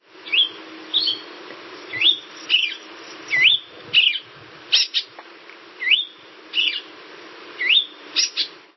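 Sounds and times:
tanager whistling melodically in a city: 0.2 - 1.3, 1.9 - 5.1, 5.8 - 6.9, 7.6 - 8.5.

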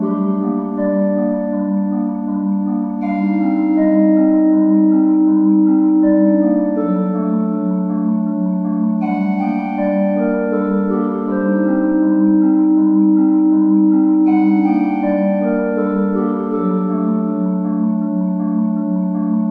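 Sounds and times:
soft organ theme loop: 0.0 - 19.4.

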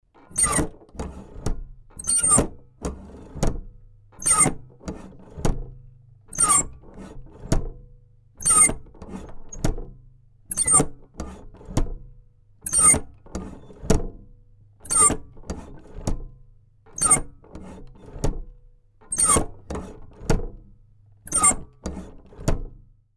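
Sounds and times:
creaking drinking device: 0.1 - 3.4, 4.2 - 5.4, 6.3 - 7.5, 8.4 - 9.8, 10.5 - 11.8, 12.6 - 22.5.

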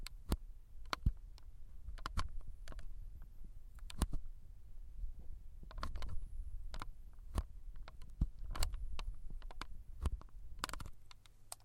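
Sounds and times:
wireless mouse switches clicking: 0.0 - 2.9, 3.8 - 4.2, 5.7 - 11.6.

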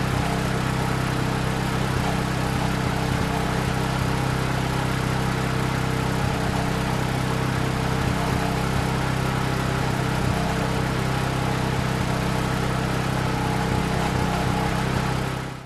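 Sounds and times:
generator starting and running: 0.0 - 15.6.

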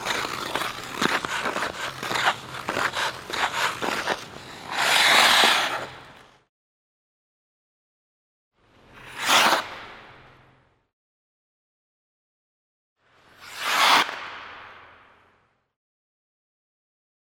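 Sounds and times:
hockey player skating alone and stopping: 0.0 - 6.5, 8.7 - 10.7, 13.1 - 15.6.

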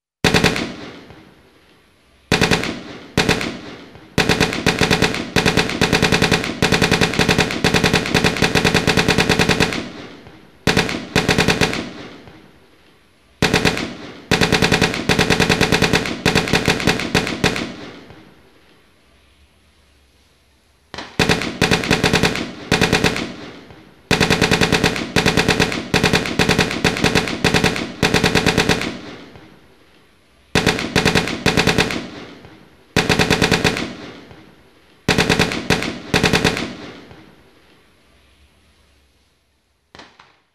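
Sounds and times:
machine gun firing from a bunker: 0.2 - 1.1, 2.3 - 12.4, 13.4 - 18.2, 21.0 - 29.6, 30.6 - 34.4, 35.1 - 37.3.

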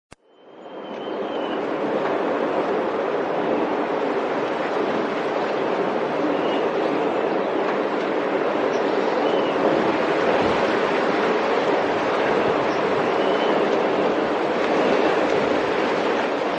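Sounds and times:
winter wind: 0.1 - 16.5.

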